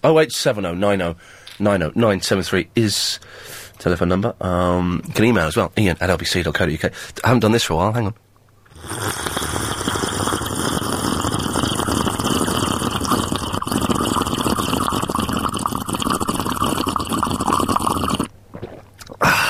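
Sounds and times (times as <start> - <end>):
speech: 0.0 - 8.2, 8.8 - 9.4
loud double slurp of a drink: 8.7 - 19.2.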